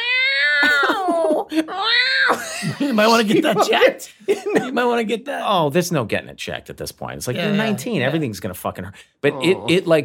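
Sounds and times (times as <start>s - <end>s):
person imitating a cat yowling while pooping: 0.0s - 2.4s, 9.2s - 9.9s
laughter: 0.6s - 5.1s
speech: 2.9s - 10.0s.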